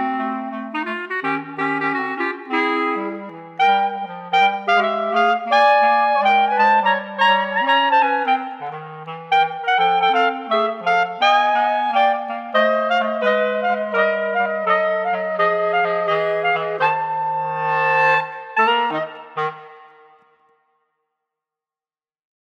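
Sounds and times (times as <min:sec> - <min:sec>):
clarinet trio playing: 0:00.0 - 0:20.3.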